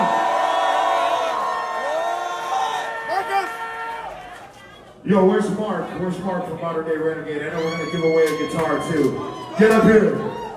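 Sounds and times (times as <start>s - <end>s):
high whoops and shouts: 0.0s - 4.3s, 7.6s - 10.5s
crowd cheering: 0.0s - 5.0s, 7.6s - 10.5s
speech: 5.1s - 10.3s.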